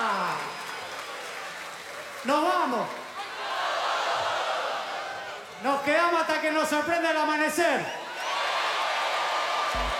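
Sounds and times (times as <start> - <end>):
concert crowd applauding: 0.0 - 5.9, 8.0 - 9.9
speech: 2.2 - 3.0, 6.5 - 8.0.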